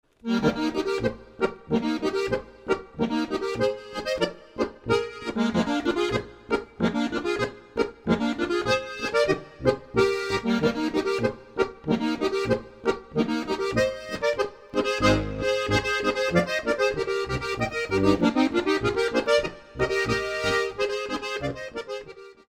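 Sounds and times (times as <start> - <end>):
Bavarian boarischer folk dance music: 0.3 - 22.3.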